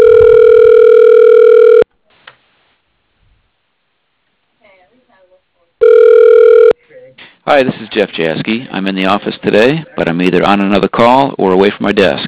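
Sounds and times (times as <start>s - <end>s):
telephone ringback tone as an automated directory system connects a call: 0.0s - 1.9s, 5.8s - 6.8s
speech: 7.5s - 12.2s.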